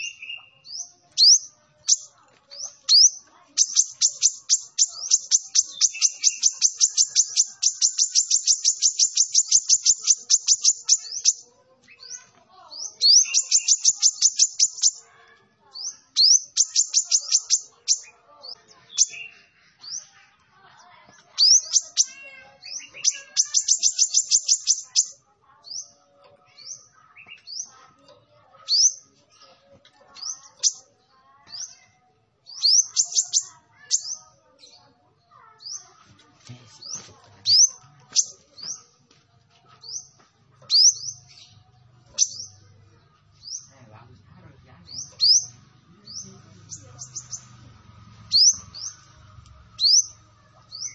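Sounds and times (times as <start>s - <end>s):
sunbird singing: 0.0s - 15.1s, 15.8s - 20.0s, 21.4s - 25.9s, 32.5s - 34.4s, 36.8s - 38.8s, 40.7s - 42.6s, 44.9s - 47.6s, 48.2s - 49.2s, 49.8s - 50.9s
faint chatter: 0.0s - 50.9s.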